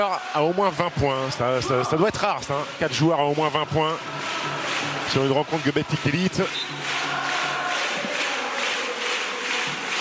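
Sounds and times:
speech: 0:00.0 - 0:07.0
basketball crowd singing at Bourg-en-Bresse's arena: 0:00.0 - 0:09.9.

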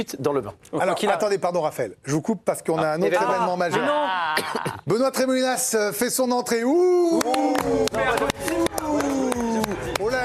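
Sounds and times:
speech: 0:00.0 - 0:09.4
crowd applauding: 0:07.1 - 0:10.2.

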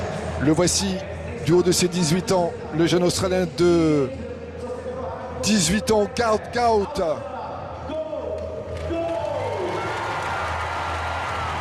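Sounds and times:
commentator speaking: 0:00.3 - 0:07.6
speech: 0:00.4 - 0:04.3, 0:05.4 - 0:07.3
stadium crowd cheering to welcome Australian sprinter Gout Gout: 0:08.3 - 0:11.5.

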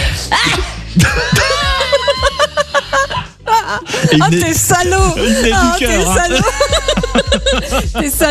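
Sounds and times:
sneeze: 0:00.3 - 0:00.8
laughter: 0:01.0 - 0:08.3
speech: 0:04.1 - 0:08.3.

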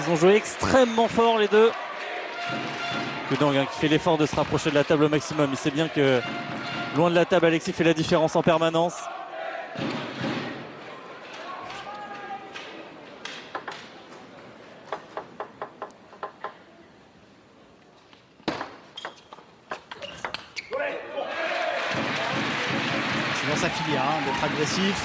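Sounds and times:
speech: 0:00.0 - 0:01.9, 0:02.5 - 0:09.2, 0:09.8 - 0:10.1, 0:24.8 - 0:25.0
table tennis crowd applauding: 0:00.0 - 0:06.2, 0:21.4 - 0:25.0
crowd cheering: 0:00.0 - 0:12.8, 0:20.8 - 0:25.0.

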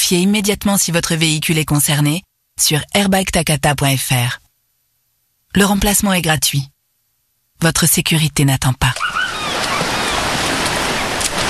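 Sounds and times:
speech: 0:00.1 - 0:04.4, 0:05.5 - 0:06.7, 0:07.6 - 0:09.3
waves at the beach: 0:09.0 - 0:11.4.

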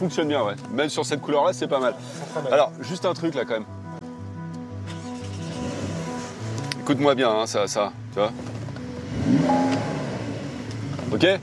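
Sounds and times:
speech: 0:00.0 - 0:03.8, 0:06.9 - 0:08.6, 0:09.2 - 0:09.8, 0:11.1 - 0:11.4
flat-six car engine idling: 0:09.0 - 0:11.1.

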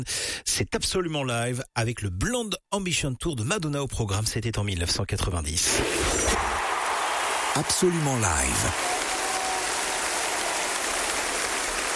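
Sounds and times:
speech: 0:00.0 - 0:06.5, 0:07.6 - 0:08.9
concert audience applauding a singer on stage: 0:06.3 - 0:11.9.

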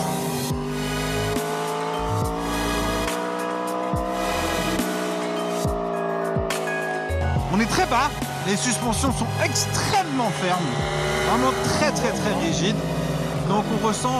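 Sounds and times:
sports car engine revving on the road: 0:00.0 - 0:14.1
speech: 0:07.6 - 0:14.1.

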